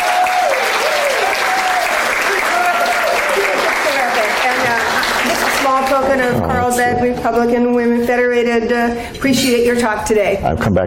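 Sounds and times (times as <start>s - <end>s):
round of applause: 0.0s - 6.0s
speech: 6.0s - 10.8s.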